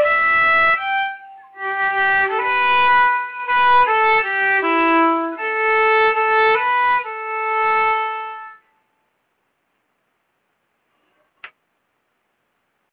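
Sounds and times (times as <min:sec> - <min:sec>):
melody: 0:00.0 - 0:08.6.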